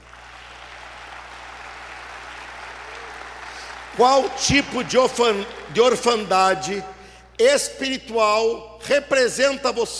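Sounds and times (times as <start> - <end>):
audience applauding: 0.0 - 6.6
speech: 4.0 - 9.9.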